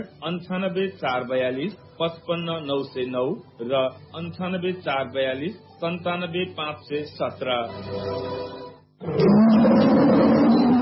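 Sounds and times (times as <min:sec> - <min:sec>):
speech: 0:00.0 - 0:09.9
tiger roar: 0:09.0 - 0:10.8.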